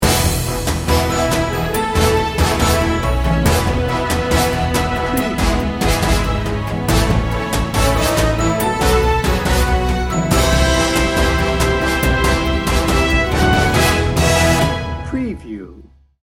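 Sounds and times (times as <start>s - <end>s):
triumphant music: 0.0s - 15.8s.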